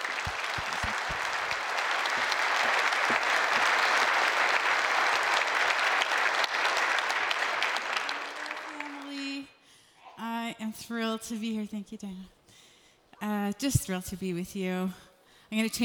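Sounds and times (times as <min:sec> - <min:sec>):
Edmonton audience applauding to welcome a speaker: 0:00.0 - 0:09.4
speech: 0:10.9 - 0:12.4, 0:13.2 - 0:15.8.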